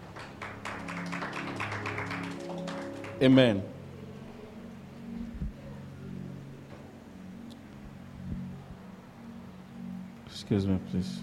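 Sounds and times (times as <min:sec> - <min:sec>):
audience clapping hands: 0:00.0 - 0:03.6
speech: 0:03.2 - 0:03.7, 0:10.5 - 0:11.2.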